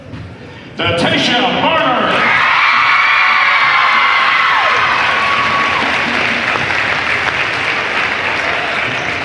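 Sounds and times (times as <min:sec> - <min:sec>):
speech: 0:00.1 - 0:01.8
crowd applause: 0:02.2 - 0:09.2.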